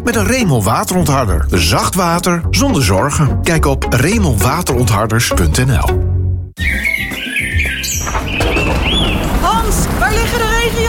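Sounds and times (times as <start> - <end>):
speech: 0.0 - 7.1
high curving bird chirps: 6.6 - 9.4
steady dense rain: 9.1 - 10.8.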